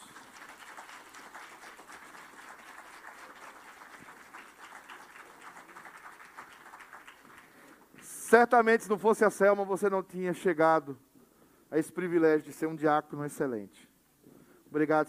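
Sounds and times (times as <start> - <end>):
audience applause: 0.0 - 8.0
speech: 8.3 - 11.1, 11.7 - 13.9, 14.7 - 15.0.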